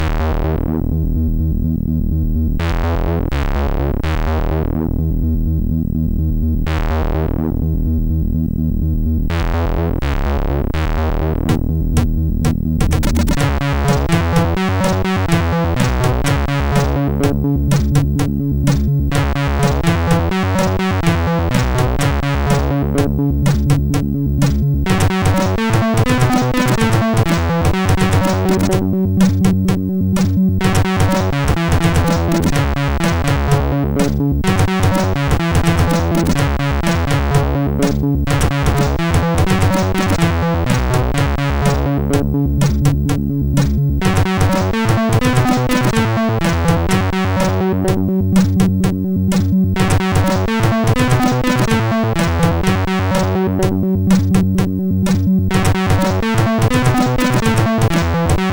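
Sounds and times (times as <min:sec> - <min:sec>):
MOS6581R4 SID chip music: 0:00.0 - 0:58.5.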